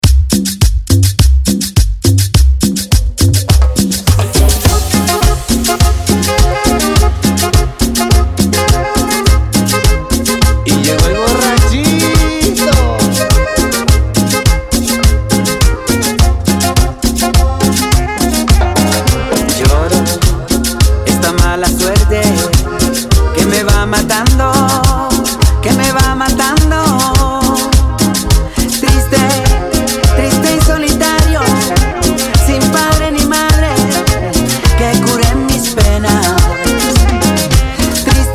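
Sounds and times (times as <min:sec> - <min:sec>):
cumbia trap intro music at 104 BPM: 0:00.0 - 0:38.3.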